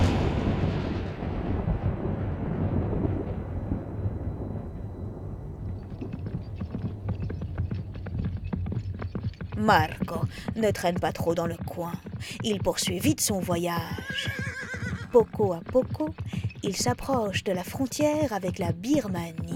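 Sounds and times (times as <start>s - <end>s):
loud deep rolling thunder in a storm: 0.0s - 9.2s
sharp crackling taps: 5.6s - 19.5s
speech: 9.6s - 14.5s, 15.1s - 19.5s.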